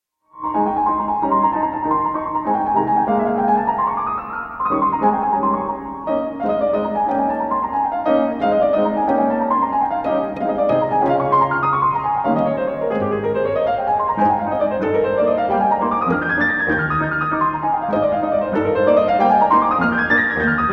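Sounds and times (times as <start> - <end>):
piano and strings quintet in A flat major: 0.3 - 20.7.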